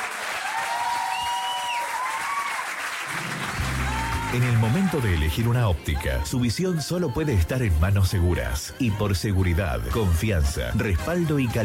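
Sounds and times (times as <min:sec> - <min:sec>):
audience applause: 0:00.0 - 0:05.6
speech: 0:04.3 - 0:11.6.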